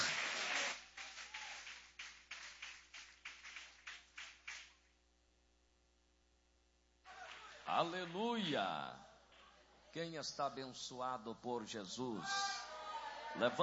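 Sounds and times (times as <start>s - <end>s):
crowd clapping in a steady rhythm: 0.0s - 4.9s, 7.1s - 8.6s
speech: 7.8s - 9.1s, 10.0s - 12.5s, 13.4s - 13.6s.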